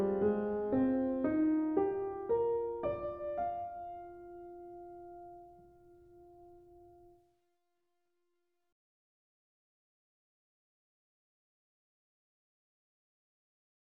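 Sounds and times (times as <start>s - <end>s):
piano: 0.0s - 7.2s.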